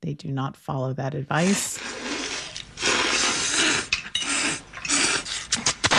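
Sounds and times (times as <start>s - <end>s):
speech: 0.1s - 1.9s
slurping noodles: 1.4s - 5.9s.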